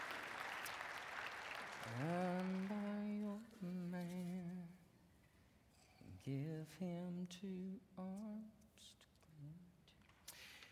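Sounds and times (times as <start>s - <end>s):
audience clapping: 0.0s - 3.2s
speech: 1.8s - 4.7s, 6.2s - 9.7s.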